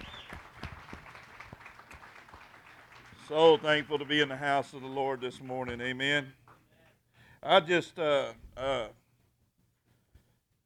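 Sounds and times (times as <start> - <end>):
round of applause: 0.0 - 6.6
speech: 3.3 - 6.4, 7.4 - 9.0.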